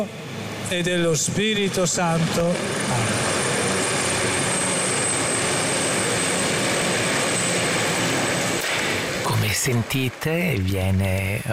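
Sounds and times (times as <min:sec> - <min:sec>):
speech: 0:00.0 - 0:03.4, 0:09.6 - 0:11.5
air force aircraft flying over the basilica: 0:00.2 - 0:09.2.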